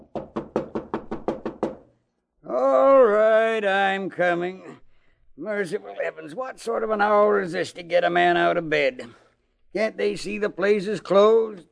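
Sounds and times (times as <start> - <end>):
pounding on the door of a poor little pawnshop: 0.0 - 1.9
speech: 3.6 - 4.8, 5.4 - 11.7.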